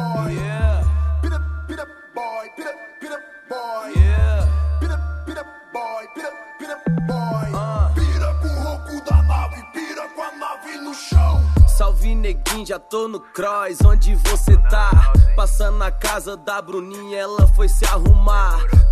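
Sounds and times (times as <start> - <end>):
bass: 0.1 - 1.8, 4.0 - 5.4, 7.0 - 9.6, 11.2 - 12.7, 13.8 - 16.3, 17.4 - 18.9.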